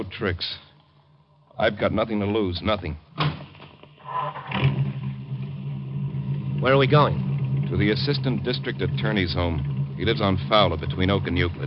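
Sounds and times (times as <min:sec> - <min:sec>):
speech: 0:00.0 - 0:00.6, 0:01.6 - 0:03.5, 0:06.6 - 0:11.6
car engine revving as the car pulls away: 0:04.0 - 0:11.6.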